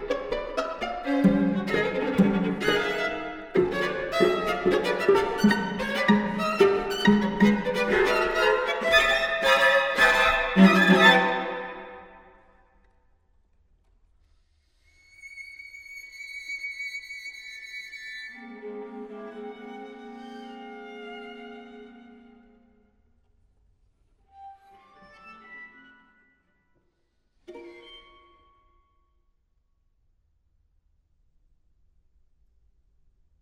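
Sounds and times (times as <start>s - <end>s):
string quartet: 0.0s - 12.2s, 18.4s - 22.8s.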